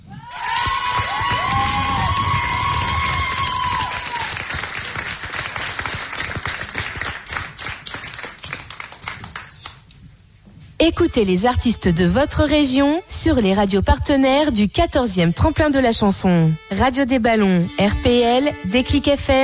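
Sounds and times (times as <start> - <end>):
applause: 0.1 - 9.8
speech: 10.9 - 19.4.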